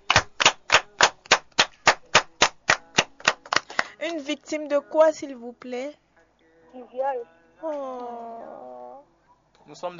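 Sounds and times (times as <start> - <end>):
audience clapping in unison: 0.0 - 4.3
speech: 4.0 - 6.0, 6.7 - 8.7, 9.7 - 9.9.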